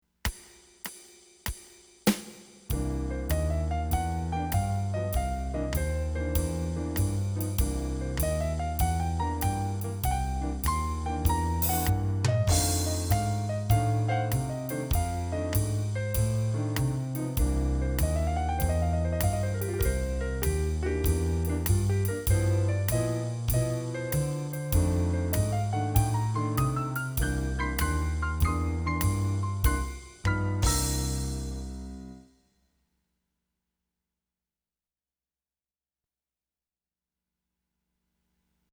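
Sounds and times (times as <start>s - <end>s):
walking bass line: 2.7s - 32.0s.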